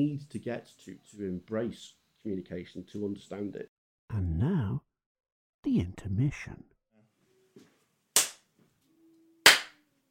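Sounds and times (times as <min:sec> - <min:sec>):
speech: 0:00.0 - 0:04.9, 0:05.6 - 0:06.7
sharp hand claps for audio sync: 0:08.2 - 0:08.5, 0:09.4 - 0:09.8.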